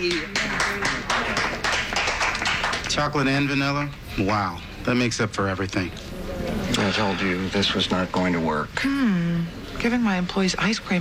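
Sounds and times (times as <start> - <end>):
round of applause: 0.0 - 3.0
speech: 3.0 - 6.0, 6.7 - 10.9.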